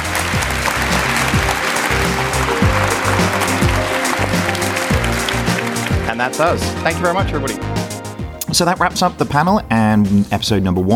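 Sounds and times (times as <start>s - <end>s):
audience applause: 0.0s - 8.0s
speech: 6.2s - 7.8s, 8.6s - 10.9s.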